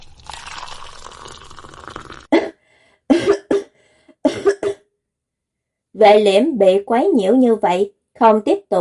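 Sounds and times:
dry coughing after being force-fed liquid: 2.4 - 4.8
speech: 6.0 - 8.7.

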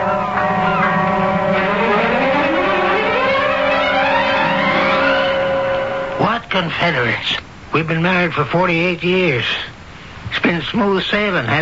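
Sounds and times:
boat engine droning: 0.0 - 6.4
speech: 6.6 - 9.7, 10.3 - 11.6.

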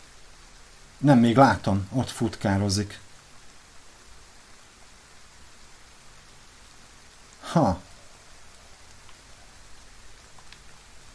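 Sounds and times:
heavy rain falling outdoors: 0.0 - 11.1
speech: 1.0 - 3.1, 7.6 - 7.9.

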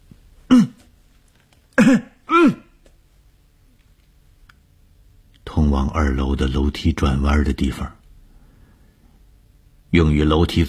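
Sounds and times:
person coughing loudly while walking along a dormitory corridor: 0.5 - 0.9, 1.7 - 2.8
speech: 1.9 - 2.1, 5.9 - 8.0, 9.9 - 10.6.

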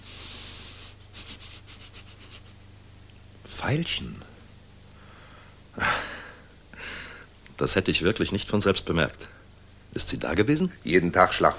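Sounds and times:
sniffing through the nose: 0.0 - 2.6
speech: 3.6 - 4.3, 7.6 - 9.4, 10.0 - 11.5.

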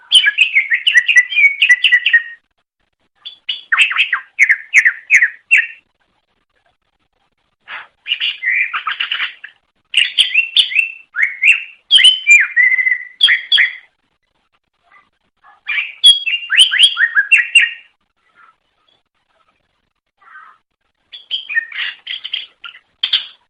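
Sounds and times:
leafbird singing: 0.0 - 2.4, 3.2 - 5.8, 8.0 - 13.9, 15.7 - 19.0, 21.1 - 23.4.

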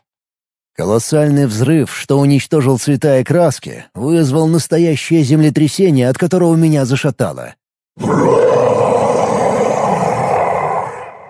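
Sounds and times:
speech: 0.8 - 8.6
dragon roaring in pain and rage: 8.0 - 11.2.

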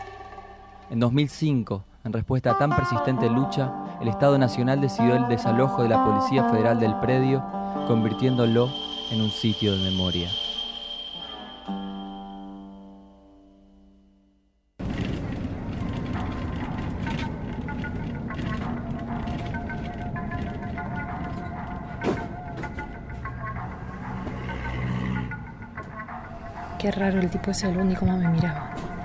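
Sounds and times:
speech: 0.9 - 10.4, 26.9 - 28.9
tonal sound: 5.0 - 13.2
street traffic with cars and motorbikes passing along a city street: 14.8 - 29.0.

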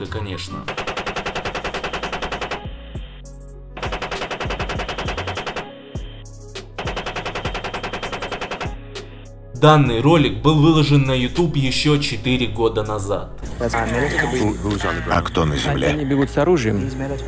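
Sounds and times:
speech: 0.0 - 0.8, 9.6 - 17.2
heavy automatic gunfire from a helicopter: 0.7 - 2.7, 3.8 - 5.7, 6.8 - 8.8.

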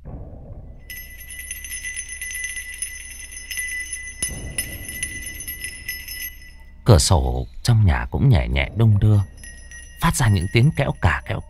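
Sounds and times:
wind chime jingling: 0.9 - 11.4
speech: 6.9 - 9.3, 10.0 - 11.4.

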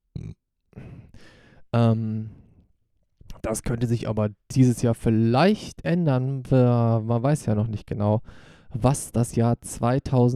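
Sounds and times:
loud low drawn-out burp: 0.1 - 1.0
short low grunt: 0.1 - 1.1
breathy rasping: 0.2 - 1.6
speech: 1.7 - 2.4, 3.4 - 10.3.

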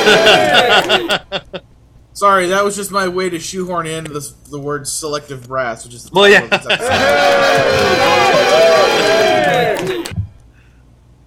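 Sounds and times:
crowd cheering from a comedy sketch: 0.0 - 1.0, 6.8 - 10.1
laughter: 0.0 - 1.7, 6.3 - 10.2
speech: 0.0 - 9.2.

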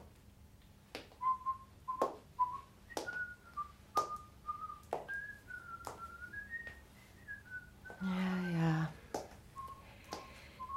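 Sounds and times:
man whistling a slow wandering tune: 1.2 - 8.0, 9.5 - 10.7.

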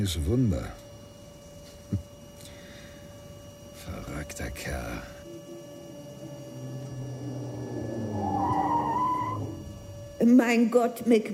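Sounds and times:
speech: 0.0 - 0.8, 4.3 - 5.2, 10.3 - 11.3
car engine rumbling: 4.1 - 10.6
car tires squealing in a skid: 6.3 - 10.2.

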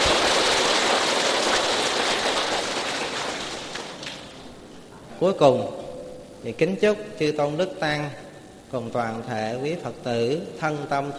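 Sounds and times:
round of applause: 0.0 - 4.2
speech: 5.2 - 5.8, 6.4 - 11.1.

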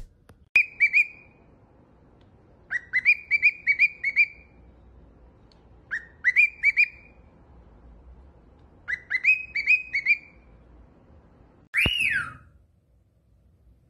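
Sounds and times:
cockatiel whistling: 0.6 - 1.3, 2.7 - 4.5, 5.9 - 7.2, 8.9 - 10.4, 11.8 - 12.5.

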